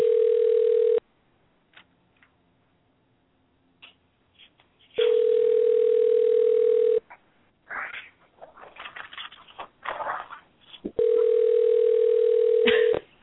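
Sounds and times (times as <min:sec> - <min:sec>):
telephone ringing tone over the line: 0:00.0 - 0:01.0, 0:05.0 - 0:07.0, 0:11.0 - 0:13.0.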